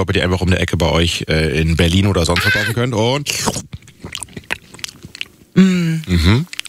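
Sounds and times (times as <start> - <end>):
speech: 0.0 - 3.8, 5.6 - 6.5
person biting into and chewing a juicy mango: 1.8 - 6.6.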